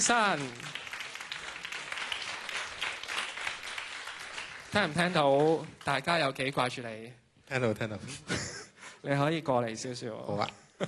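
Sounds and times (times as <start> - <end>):
speech: 0.0 - 0.8, 4.7 - 8.4, 9.0 - 10.8
audience applause welcoming a performer onto a stage: 0.0 - 6.7.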